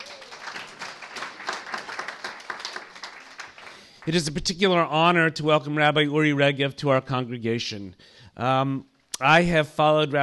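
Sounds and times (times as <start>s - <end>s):
audience round of applause: 0.0s - 4.2s
speech: 4.0s - 10.2s.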